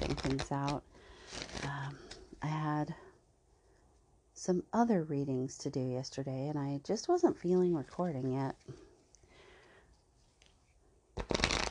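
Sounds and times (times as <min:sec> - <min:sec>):
papery riffle of cards as a children's spirit animal card is pulled from a deck: 0:00.0 - 0:02.2, 0:11.2 - 0:11.6
speech: 0:00.3 - 0:01.4, 0:02.4 - 0:03.1, 0:04.4 - 0:08.8.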